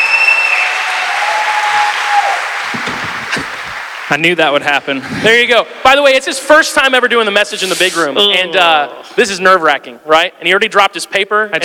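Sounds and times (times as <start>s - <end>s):
high-pitched whistles: 0.0s - 1.1s
shouts of cheering: 0.0s - 3.3s
crowd applause: 0.0s - 5.1s
speech: 4.1s - 11.6s.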